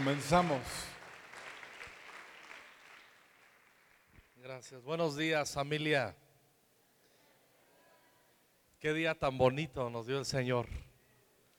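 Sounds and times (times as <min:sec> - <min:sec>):
speech: 0:00.0 - 0:00.9, 0:04.4 - 0:06.2, 0:08.8 - 0:10.9
applause: 0:00.0 - 0:04.5.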